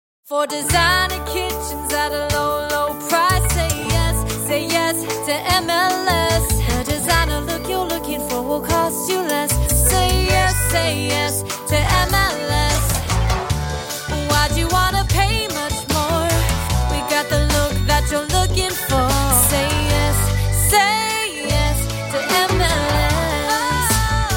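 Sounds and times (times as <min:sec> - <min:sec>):
person singing: 0:00.3 - 0:24.3.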